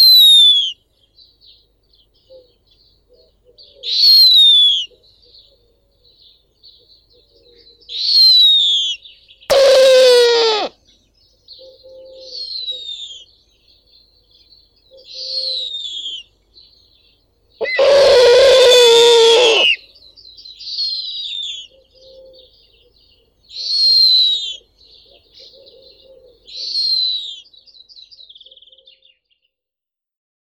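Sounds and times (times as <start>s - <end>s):
snowy owl Nyctea scandiaca chick calling: 0.0s - 0.8s, 3.1s - 5.0s, 7.2s - 10.8s, 14.9s - 16.3s, 17.6s - 19.8s, 20.8s - 27.5s.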